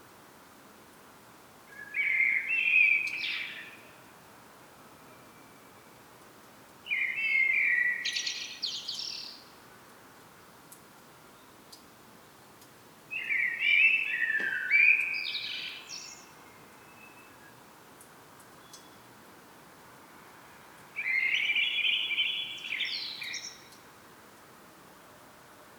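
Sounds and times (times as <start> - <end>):
common blackbird singing: 1.8 - 3.9, 6.9 - 9.4, 13.1 - 17.6, 21.0 - 23.8.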